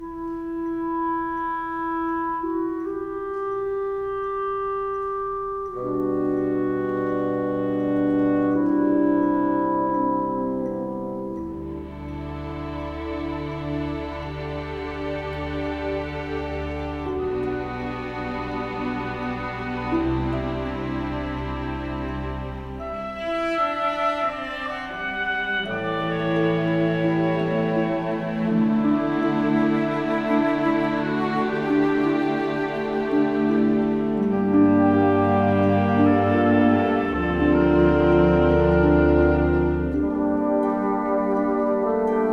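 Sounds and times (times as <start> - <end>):
orchestral cue: 0.0 - 42.3.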